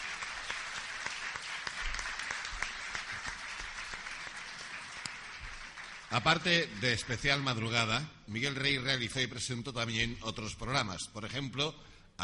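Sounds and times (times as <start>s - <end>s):
audience applause: 0.0s - 7.6s
speech: 6.1s - 12.2s.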